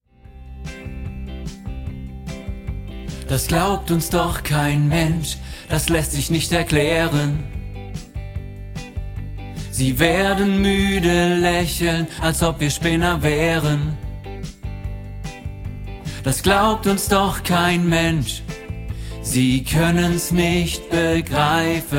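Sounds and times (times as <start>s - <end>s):
tenor voice singing a learning part: 3.2s - 7.6s, 9.7s - 14.0s, 16.1s - 18.5s, 19.2s - 21.9s.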